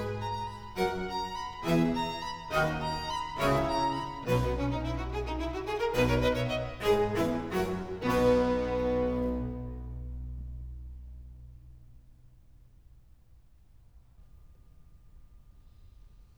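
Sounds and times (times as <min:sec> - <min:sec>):
strings and continuo playing an allegro in C major: 0:00.0 - 0:11.7.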